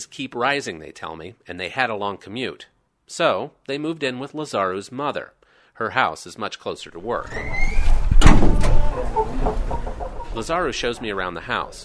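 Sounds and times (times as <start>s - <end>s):
speech: 0.0s - 9.7s, 10.4s - 11.8s
two chickens kept in a house clucking: 7.9s - 11.8s.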